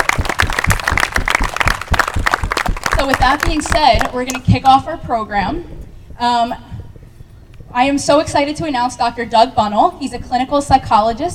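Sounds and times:
crowd applauding: 0.0 - 4.4
speech: 3.0 - 6.7, 7.7 - 11.3.

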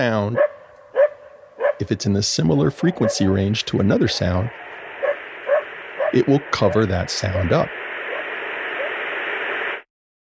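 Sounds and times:
speech: 0.0 - 0.6, 1.8 - 4.7, 6.1 - 7.8
white noise: 1.8 - 9.9.

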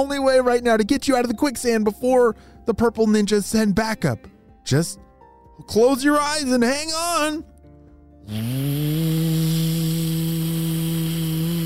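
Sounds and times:
speech: 0.0 - 5.0, 5.6 - 7.5, 8.3 - 11.6
very noisy vacuum cleaner running: 8.3 - 11.6.

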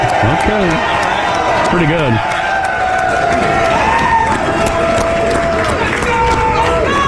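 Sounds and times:
live audience of thousands cheering at a sports talk studio event: 0.0 - 7.0
speech: 0.5 - 1.0, 1.7 - 2.4, 3.1 - 3.8.

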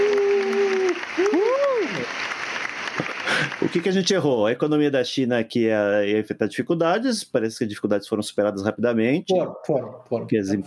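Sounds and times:
applause sound effect: 0.0 - 4.6
speech: 3.7 - 10.6.

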